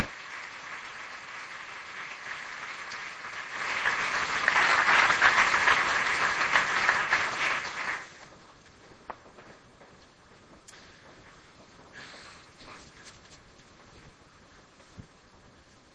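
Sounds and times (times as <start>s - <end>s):
audience applause: 0.0s - 8.2s.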